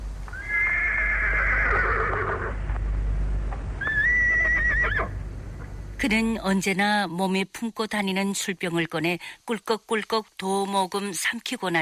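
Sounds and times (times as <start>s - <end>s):
low rumble: 0.0s - 9.6s
horse neighing: 0.3s - 2.6s, 3.8s - 5.2s
speech: 6.0s - 11.8s.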